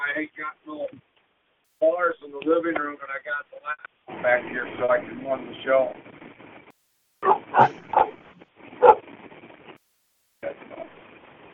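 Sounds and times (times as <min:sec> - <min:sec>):
speech: 0:00.1 - 0:01.0, 0:01.8 - 0:06.1, 0:07.2 - 0:08.1
pit bull snarling: 0:07.2 - 0:08.2
pit bull barking aggressively: 0:07.2 - 0:09.0.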